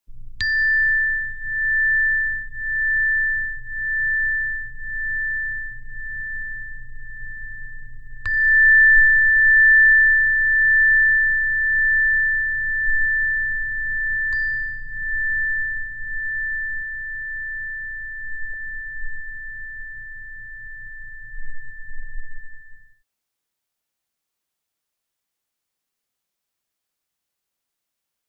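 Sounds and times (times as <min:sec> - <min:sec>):
zenergy chime: 0:00.3 - 0:23.0.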